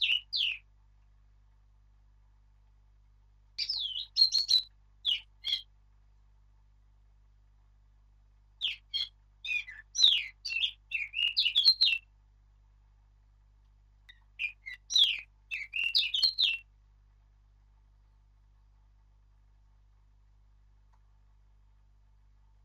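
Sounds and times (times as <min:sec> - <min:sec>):
Sylvia atricapilla: 0:00.0 - 0:00.6, 0:03.6 - 0:05.7, 0:08.6 - 0:12.0, 0:14.1 - 0:16.6.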